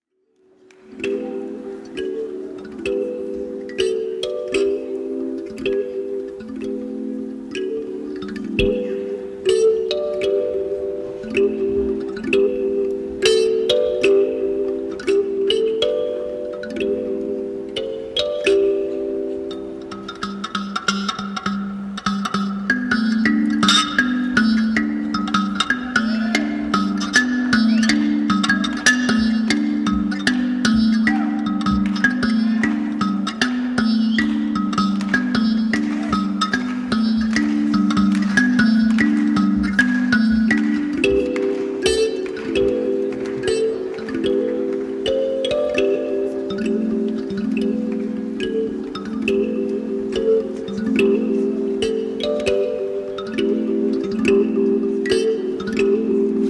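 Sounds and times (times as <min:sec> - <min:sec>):
kalimba: 0:00.2 - 0:56.4.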